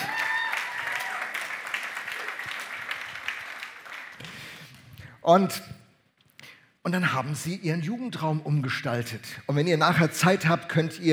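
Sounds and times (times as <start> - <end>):
audience applause: 0.0 - 4.6
speech: 5.2 - 5.8, 6.9 - 11.1.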